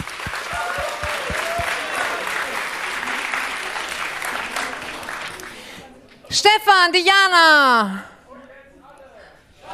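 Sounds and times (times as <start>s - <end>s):
audience applause: 0.0s - 5.6s
speech: 6.3s - 8.1s.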